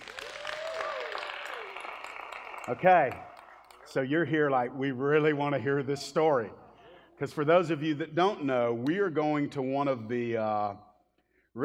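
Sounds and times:
audience clapping: 0.0 - 4.2
speech: 2.7 - 3.3, 3.9 - 6.6, 7.2 - 10.8.

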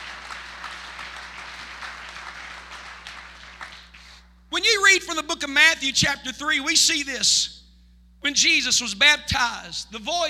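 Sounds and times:
audience clapping: 0.0 - 4.2
low constant hum: 0.0 - 10.2
speech: 4.6 - 7.6, 8.2 - 10.2.

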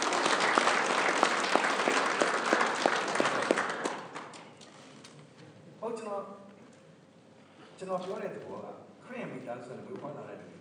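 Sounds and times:
audience applause: 0.0 - 4.5
speech: 7.8 - 10.5.

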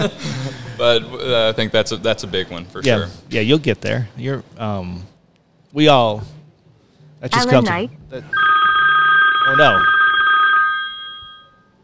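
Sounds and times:
speech: 0.0 - 5.1, 5.7 - 6.4, 7.2 - 8.4, 9.5 - 9.9
phone ringing with an incoming call: 8.3 - 11.8.

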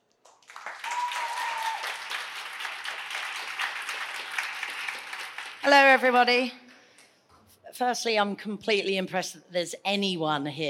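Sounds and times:
audience applause welcoming a speaker to the stage at a New Blood Festival talk: 0.3 - 5.7
speech: 5.6 - 6.6, 7.8 - 10.6.

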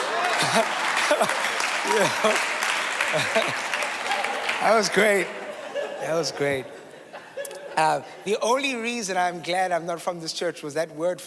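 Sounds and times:
audience round of applause: 0.0 - 6.6
laughter: 0.0 - 8.3
speech: 0.5 - 3.7, 4.6 - 5.4, 6.0 - 6.8, 7.8 - 11.2.

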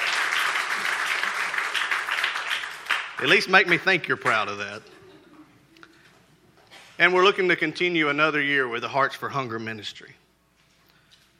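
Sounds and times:
crowd applause: 0.0 - 4.6
speech: 3.2 - 5.0, 7.0 - 10.2.

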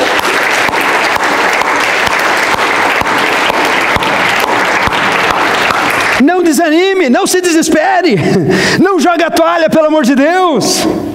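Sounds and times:
audience applause: 0.0 - 6.6
speech: 6.5 - 11.1.

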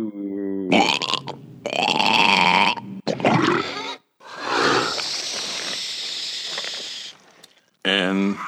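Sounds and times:
deep wet monster burps: 0.0 - 5.1, 7.8 - 8.4.

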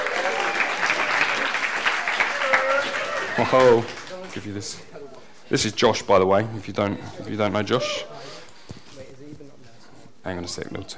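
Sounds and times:
audience applause for a reader: 0.0 - 4.7
speech: 3.4 - 4.9, 5.5 - 8.3, 10.2 - 10.9.

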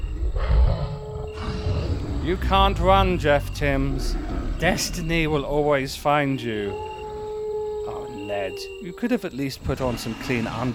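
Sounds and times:
growling howling creature sound effect: 0.0 - 8.3
speech: 2.3 - 6.9, 8.4 - 10.7.

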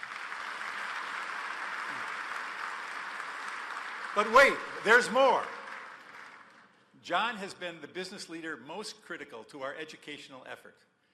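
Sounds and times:
audience applause: 0.0 - 6.8
speech: 4.2 - 5.6, 7.0 - 10.9.

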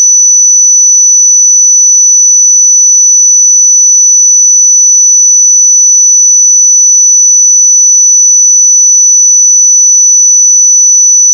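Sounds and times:
pure sine tone at 5967 Hz: 0.0 - 11.3.

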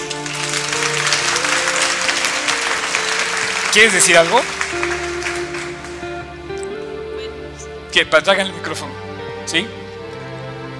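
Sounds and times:
applause: 0.0 - 6.3
speech: 3.7 - 4.9, 8.0 - 9.8.

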